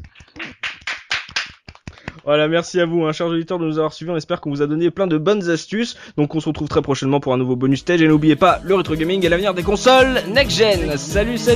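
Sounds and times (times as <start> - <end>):
a few people clapping hands: 0.0 - 2.2
speech: 2.3 - 11.5.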